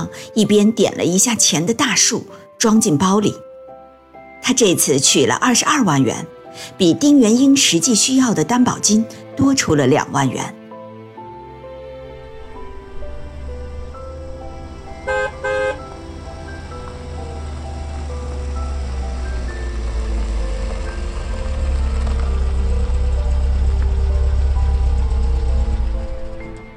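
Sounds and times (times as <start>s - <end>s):
speech: 0.0s - 3.5s, 4.4s - 10.6s
car engine running: 11.4s - 26.7s
car horn honks: 14.9s - 16.2s.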